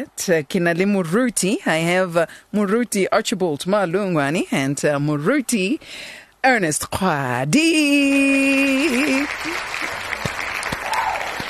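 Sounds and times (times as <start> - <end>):
speech: 0.0 - 10.0
hand claps: 8.9 - 11.4.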